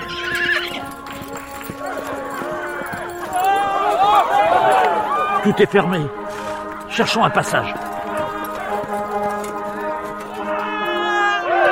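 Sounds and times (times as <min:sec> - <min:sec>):
Rocinante the horse giving whinnying neighs: 0:00.0 - 0:00.9
Rocinante the horse trotting with clip-clop hoofbeats: 0:00.0 - 0:11.6
speech: 0:05.4 - 0:06.3, 0:07.0 - 0:07.9.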